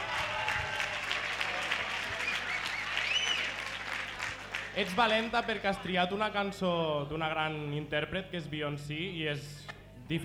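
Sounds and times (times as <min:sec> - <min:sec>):
audience applauding a 13-year-old girl after she sings: 0:00.0 - 0:05.7
speech: 0:04.8 - 0:10.2.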